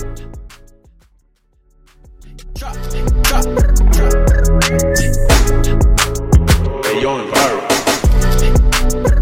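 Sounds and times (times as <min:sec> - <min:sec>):
hip hop rap: 0:02.2 - 0:05.7, 0:06.4 - 0:09.0.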